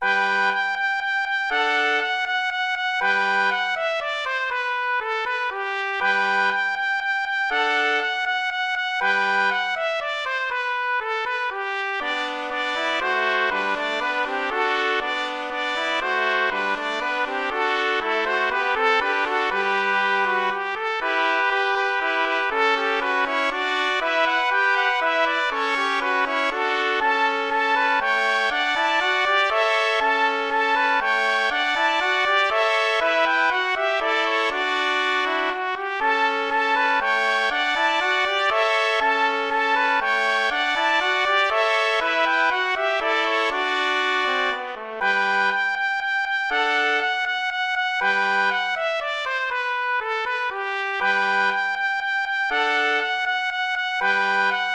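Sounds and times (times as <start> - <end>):
old Hungarian dance: 0.0 - 54.7.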